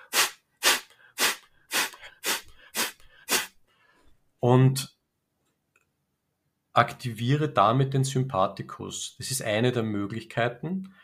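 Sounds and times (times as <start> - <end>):
forceful pulsed exhalations through the nose or mouth as a breathing exercise: 0.0 - 4.0
speech: 4.4 - 5.0, 6.8 - 11.0.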